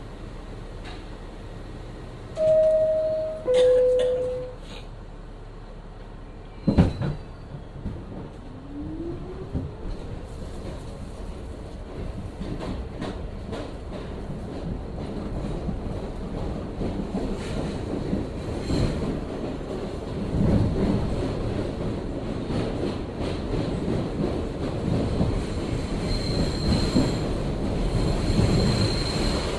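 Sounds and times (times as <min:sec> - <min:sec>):
subway train rumble between Clark Street and Atlantic Avenue: 0:00.0 - 0:29.5
subway train chime, Brooklyn: 0:02.4 - 0:04.6.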